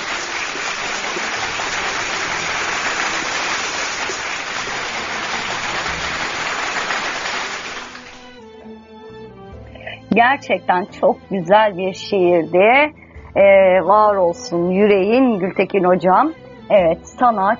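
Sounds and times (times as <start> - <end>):
applause after a poetry reading: 0.0 - 8.4
speech: 10.2 - 17.5.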